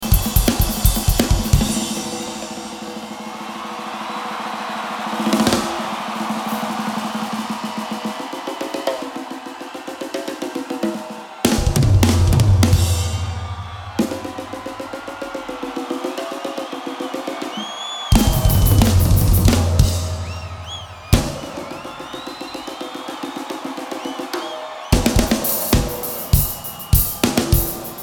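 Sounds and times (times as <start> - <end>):
drum solo: 0.0 - 28.0.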